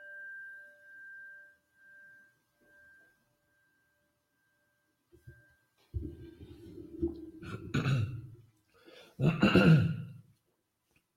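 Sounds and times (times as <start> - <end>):
throat clearing: 7.5 - 8.3, 9.2 - 10.2.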